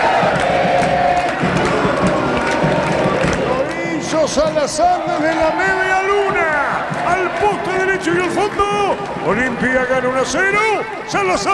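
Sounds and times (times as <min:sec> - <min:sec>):
Mexican football crowd cheering and shouting a goal: 0:00.0 - 0:11.5
speech: 0:04.3 - 0:11.5.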